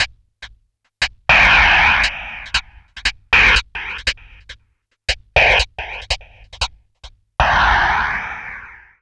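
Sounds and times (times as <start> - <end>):
hi-hat: 0.0 - 7.2
drum loop: 0.0 - 7.7.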